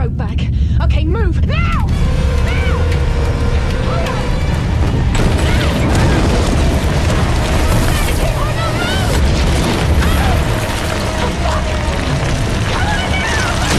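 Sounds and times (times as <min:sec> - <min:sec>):
faint strained voices: 0:00.7 - 0:13.7
rock shifting and collapsing in tunnel: 0:04.2 - 0:13.7.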